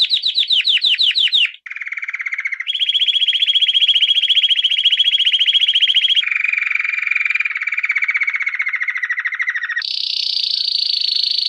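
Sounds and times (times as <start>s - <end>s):
canary singing trills: 0.0s - 11.4s.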